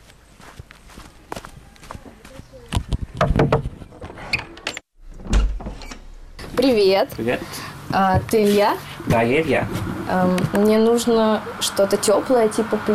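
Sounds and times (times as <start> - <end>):
footsteps walking to a warehouse: 0.0 - 3.1
speech: 6.6 - 12.9.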